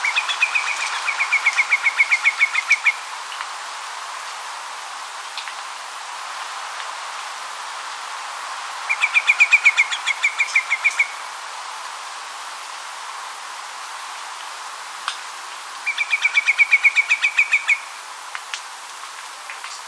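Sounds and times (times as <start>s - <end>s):
macarico de bico torto song: 0.0s - 3.0s, 8.9s - 11.2s, 15.9s - 17.9s.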